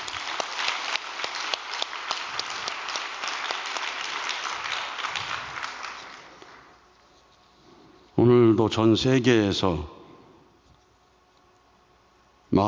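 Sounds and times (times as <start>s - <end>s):
audience applause: 0.0s - 6.8s
speech: 8.2s - 10.0s.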